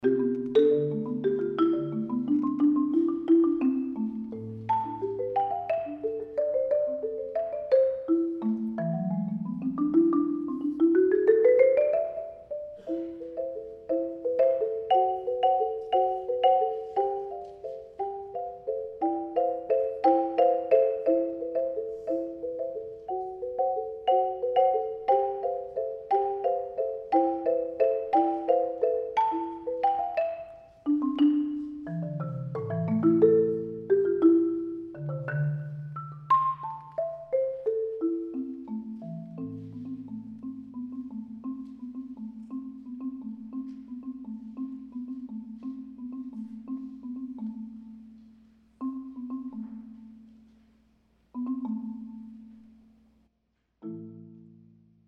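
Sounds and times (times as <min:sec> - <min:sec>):
marimba: 0:00.0 - 0:55.0.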